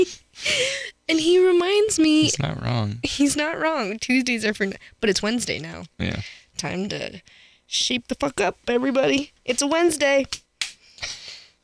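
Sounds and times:
speech: 0.0 - 10.4
motivational hand claps: 10.3 - 10.8.

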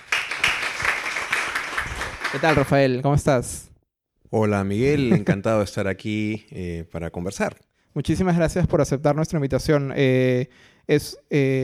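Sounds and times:
audience applause: 0.0 - 2.7
speech: 2.3 - 3.7, 4.3 - 11.6
laughter: 4.9 - 5.5.

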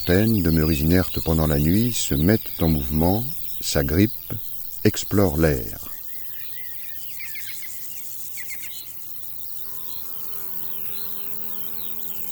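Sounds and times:
speech: 0.0 - 5.9
insects stridulating in grass: 0.0 - 6.0
scattered insect chirps in grass: 0.0 - 12.3.

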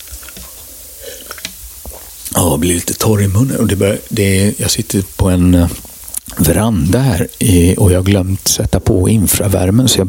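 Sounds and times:
person drinking water: 0.0 - 2.4, 5.7 - 6.4
speech: 2.6 - 10.0.

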